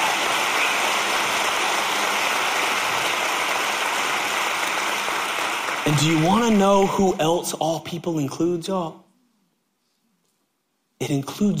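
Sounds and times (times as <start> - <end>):
audience clapping: 0.0 - 7.4
speech: 5.9 - 9.0, 11.0 - 11.5.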